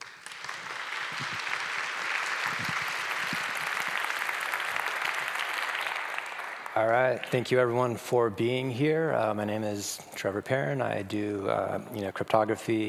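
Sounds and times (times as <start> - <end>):
audience applause: 0.0 - 7.5
speech: 1.1 - 1.5, 2.5 - 2.8, 6.8 - 12.8.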